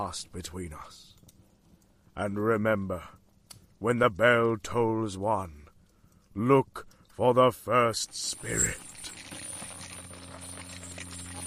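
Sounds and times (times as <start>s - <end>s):
speech: 0.0s - 1.1s, 2.2s - 3.2s, 3.8s - 5.6s, 6.4s - 8.9s
low hum: 8.1s - 11.4s
chains rattling: 8.2s - 11.4s.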